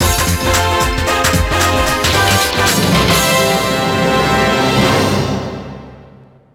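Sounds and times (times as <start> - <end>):
race finish fanfare: 0.0 - 6.1.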